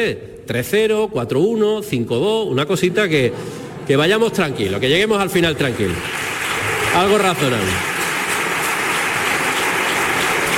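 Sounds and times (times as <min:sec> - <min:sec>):
speech: 0:00.0 - 0:06.3, 0:06.9 - 0:07.9
applause from a distant crowd: 0:04.7 - 0:10.5.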